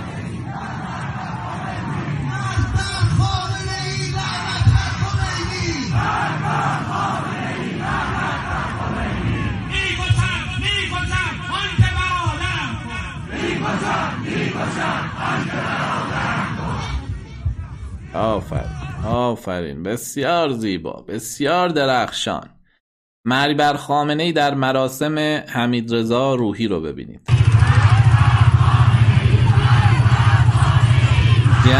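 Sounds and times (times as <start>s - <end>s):
large crowd of townspeople chanting in the street in Semirom, Iran: 0.0s - 3.1s, 4.1s - 19.0s, 27.3s - 31.7s
speech: 19.3s - 22.6s, 23.2s - 27.3s.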